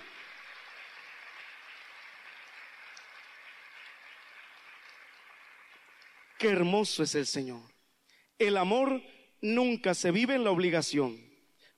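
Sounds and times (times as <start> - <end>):
large gathered crowd applauding: 0.0 - 7.1
speech: 6.4 - 7.7, 8.4 - 11.3.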